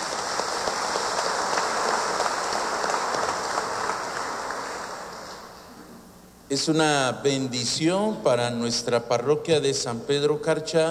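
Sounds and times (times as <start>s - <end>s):
audience applause: 0.0s - 5.2s
speech: 6.5s - 10.8s.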